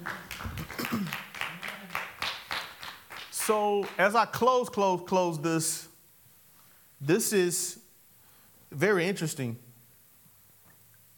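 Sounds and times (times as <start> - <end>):
audience clapping hands: 0.0 - 4.2
speech: 3.5 - 5.9, 7.0 - 7.8, 8.7 - 9.6.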